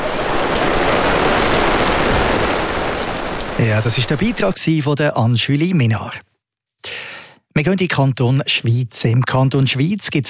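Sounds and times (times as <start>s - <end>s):
steady rain pouring: 0.0s - 4.6s
speech: 3.6s - 6.3s, 7.6s - 10.2s.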